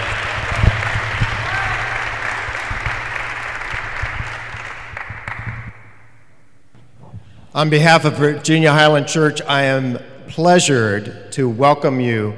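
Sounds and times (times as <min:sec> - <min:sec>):
audience applause welcoming a pastor at Virginia Highland Church in Atlanta: 0:00.0 - 0:06.0
speech: 0:07.6 - 0:12.3.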